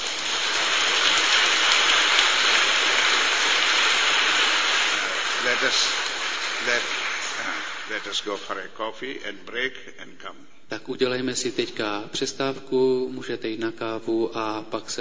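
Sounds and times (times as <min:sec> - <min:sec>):
audience clapping: 0:00.0 - 0:08.6
speech: 0:05.6 - 0:06.0, 0:06.6 - 0:14.9.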